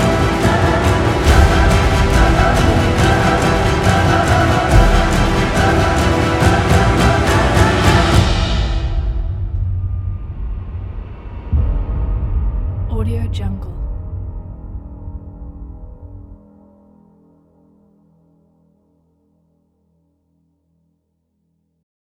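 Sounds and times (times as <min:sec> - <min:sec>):
tense horror trailer music: 0:00.0 - 0:17.1.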